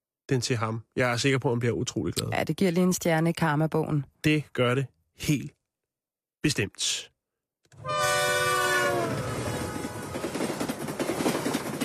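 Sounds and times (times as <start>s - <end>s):
speech: 0.3s - 5.6s, 6.4s - 7.1s, 7.7s - 8.2s
train horn blast: 7.8s - 10.8s
train rumble and wheels clattering on rails: 8.7s - 11.8s.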